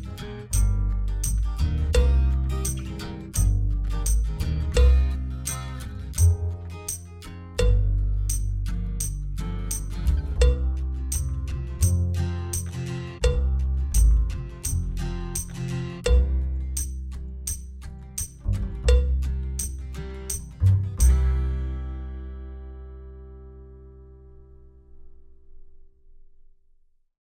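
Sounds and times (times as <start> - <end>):
drum kit playing a country reel backing track: 0.0 - 21.8.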